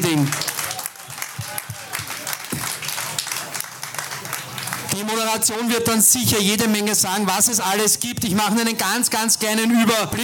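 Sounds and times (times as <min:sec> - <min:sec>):
audience applause: 0:00.0 - 0:05.4
speech: 0:05.1 - 0:10.2.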